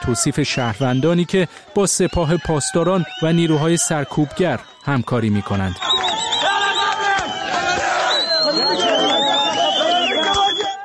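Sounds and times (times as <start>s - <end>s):
speech: 0.0s - 6.3s
large protest crowd shouting slogans: 5.8s - 10.8s.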